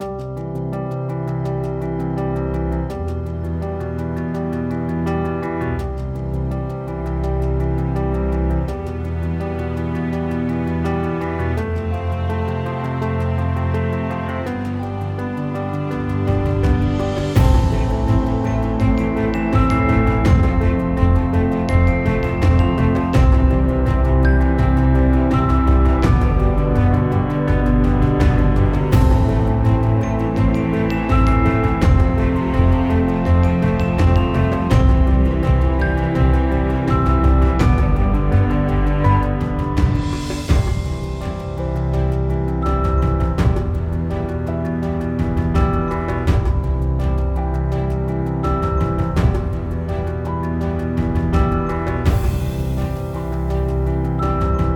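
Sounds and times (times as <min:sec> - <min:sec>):
hopeful piano music: 0:00.0 - 0:54.7.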